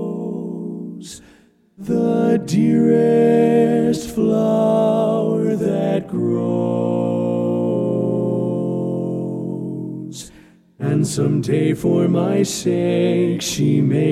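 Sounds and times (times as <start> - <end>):
lead vocal part of a learning track: 0.0 - 14.1.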